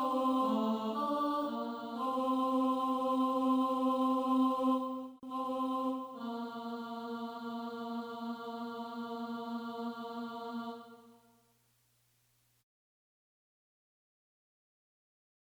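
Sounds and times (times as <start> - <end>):
tenor singing: 0.0 - 11.1.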